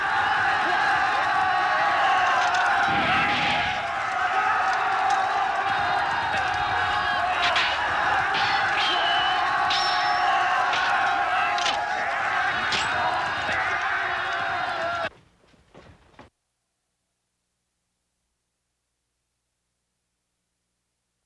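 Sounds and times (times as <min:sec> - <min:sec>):
Japanese battle atmosphere: 0:00.0 - 0:15.1.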